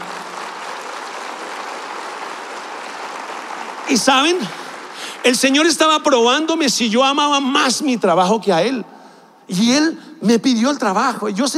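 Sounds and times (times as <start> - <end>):
audience applause: 0.0 - 6.8
speech: 3.9 - 4.6, 5.2 - 8.9, 9.5 - 11.5.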